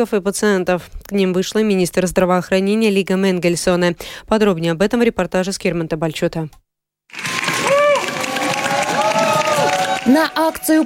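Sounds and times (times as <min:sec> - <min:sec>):
speech: 0:00.0 - 0:07.3, 0:10.1 - 0:10.8
protest crowd applauding: 0:07.1 - 0:10.8.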